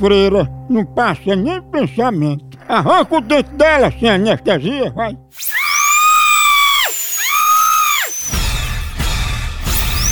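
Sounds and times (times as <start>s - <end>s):
speech: 0.0s - 5.6s
dentist's drill whining: 5.4s - 8.7s, 9.7s - 10.1s.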